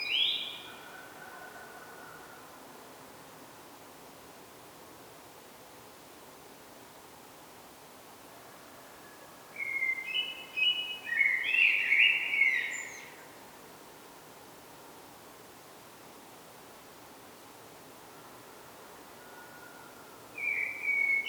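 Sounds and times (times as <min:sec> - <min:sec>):
common blackbird singing a flowing phrase: 0:00.0 - 0:00.7, 0:09.6 - 0:13.2, 0:20.4 - 0:21.2.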